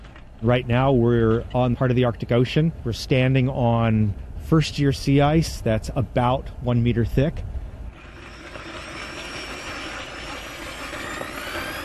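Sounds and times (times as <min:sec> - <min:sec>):
speech: 0:00.4 - 0:07.5
drill boring through first-year sea ice: 0:07.9 - 0:11.8.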